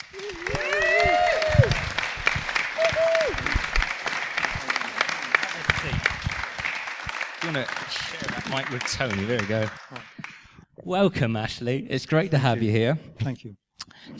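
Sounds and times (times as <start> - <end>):
audience whoops and cheers: 0.0 - 2.0, 2.6 - 3.8
live audience applause: 0.0 - 10.6
speech: 7.6 - 9.9, 10.9 - 14.1.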